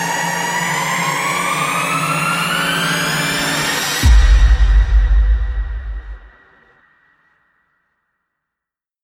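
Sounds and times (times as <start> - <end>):
long rising screamer: 0.2 - 6.3.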